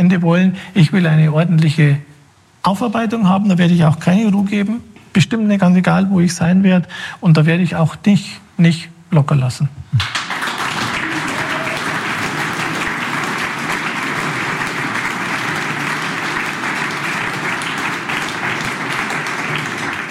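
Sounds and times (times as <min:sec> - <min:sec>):
speech: 0:00.0 - 0:10.2
audience clapping: 0:10.0 - 0:20.1.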